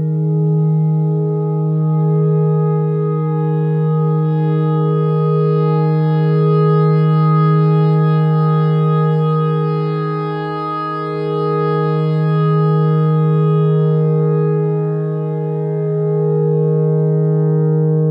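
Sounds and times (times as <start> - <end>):
clarinet notes in E: 0.0 - 18.0.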